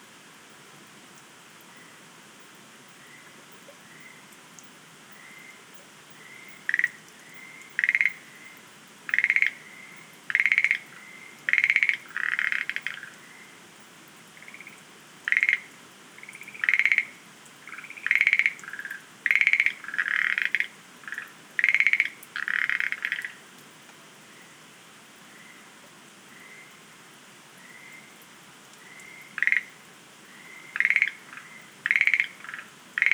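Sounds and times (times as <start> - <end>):
Schlegel's green tree frog giving rattling pulsed calls: 6.2 - 13.2, 14.4 - 23.4, 28.8 - 33.1.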